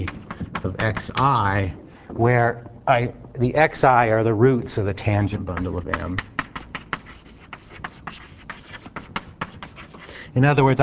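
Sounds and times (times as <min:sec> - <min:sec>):
writing on a board during a mathematics lecture: 0:00.0 - 0:01.5, 0:05.0 - 0:10.1
speech: 0:00.0 - 0:06.3, 0:10.4 - 0:10.8.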